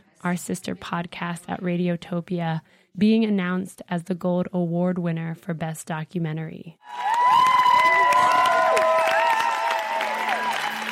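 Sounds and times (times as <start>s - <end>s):
speech: 0.2s - 7.1s
crowd cheering in a banquet room: 6.8s - 10.9s.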